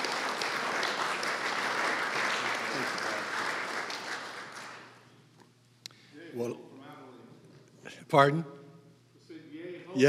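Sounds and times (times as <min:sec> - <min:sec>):
audience applause welcoming a speaker at an event: 0:00.0 - 0:05.0
speech: 0:06.4 - 0:06.7, 0:08.1 - 0:08.6.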